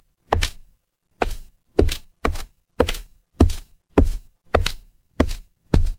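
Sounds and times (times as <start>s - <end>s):
footsteps on wood: 1.2s - 5.9s.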